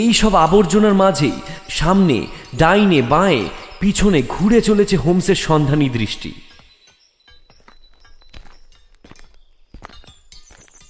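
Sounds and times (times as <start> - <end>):
speech: 0.0 - 6.4
footsteps across a blacksmith's forge floor strewn with scraps of iron and wood: 6.5 - 10.8.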